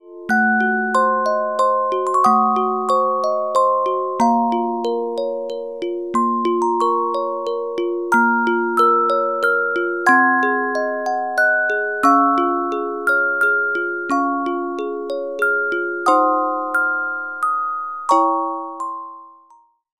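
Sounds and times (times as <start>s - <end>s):
carillon music box melodies: 0.0s - 19.8s.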